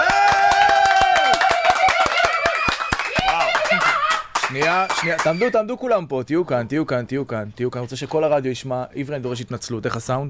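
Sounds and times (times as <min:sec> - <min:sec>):
audience applause: 0:00.0 - 0:05.6
speech: 0:04.5 - 0:10.2.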